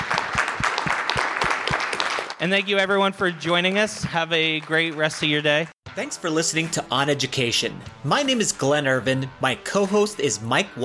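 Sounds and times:
round of applause from a crowd: 0.0s - 5.7s
speech: 2.4s - 10.8s.

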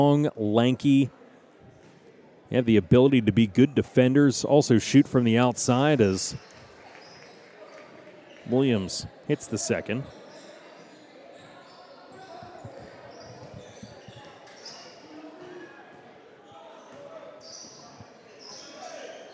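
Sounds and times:
commentator speaking: 0.0s - 1.1s, 2.5s - 6.4s, 8.5s - 10.1s
speech: 0.0s - 1.2s, 2.5s - 6.5s, 8.5s - 10.2s
crowd noise: 0.0s - 19.3s
basketball dribbled on a court during a boys varsity high school game: 12.2s - 14.9s.

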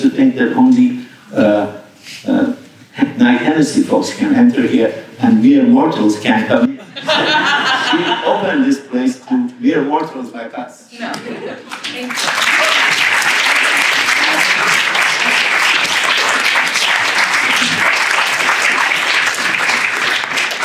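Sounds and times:
speech: 0.1s - 1.5s, 3.6s - 7.6s, 8.4s - 12.3s
laughter: 6.7s - 8.7s, 11.0s - 11.8s, 12.4s - 15.8s
audience applause: 11.7s - 20.6s.

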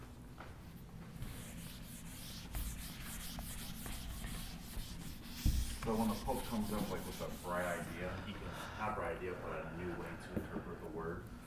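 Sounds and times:
eraser rubbing writing off a board in a classroom lecture: 1.2s - 8.0s
speech: 5.9s - 11.4s.

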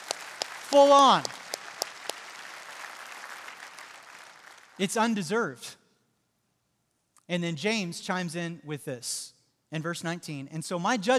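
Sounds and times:
audience applauding: 0.0s - 4.9s
speech: 0.7s - 1.4s, 4.8s - 5.8s, 7.3s - 11.1s.

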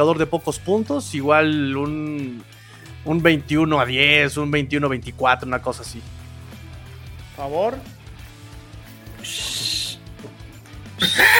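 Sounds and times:
speech: 0.0s - 6.2s, 7.4s - 8.0s, 9.2s - 9.7s, 11.0s - 11.3s
shrill high-pitched whistles: 9.1s - 10.1s.

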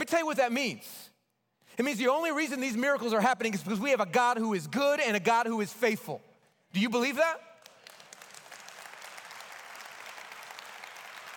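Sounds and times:
speech: 0.1s - 1.1s, 1.7s - 7.5s
audience clapping: 7.6s - 11.3s.

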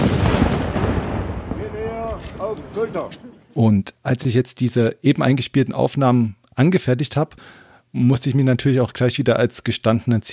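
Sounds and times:
ceremonial salute cannon firing: 0.0s - 3.5s
speech: 2.5s - 10.3s.

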